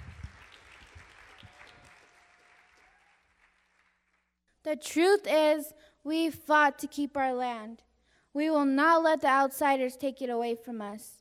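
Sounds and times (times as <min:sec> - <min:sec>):
audience applause: 0:00.0 - 0:04.3
speech: 0:04.7 - 0:11.1.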